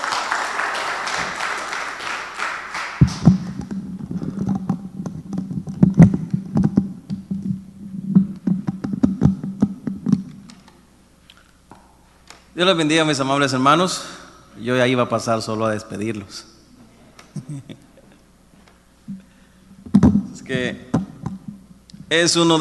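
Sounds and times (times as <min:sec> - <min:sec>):
audience clapping hands: 0:00.0 - 0:03.7
low steady hum: 0:00.0 - 0:22.6
speech: 0:12.6 - 0:16.6, 0:17.4 - 0:17.9, 0:20.5 - 0:20.9, 0:22.1 - 0:22.6.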